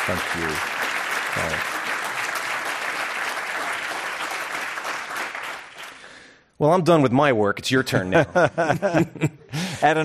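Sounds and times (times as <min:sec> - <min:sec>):
speech: 0:00.0 - 0:01.8, 0:06.6 - 0:10.0
audience applause welcoming General Stanley McChrystal at a Commonwealth Club event: 0:00.0 - 0:06.1
laughter: 0:08.0 - 0:09.8.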